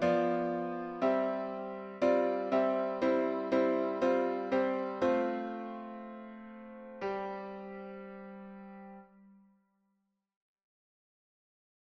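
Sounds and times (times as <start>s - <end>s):
piano synth: 0.0s - 9.1s.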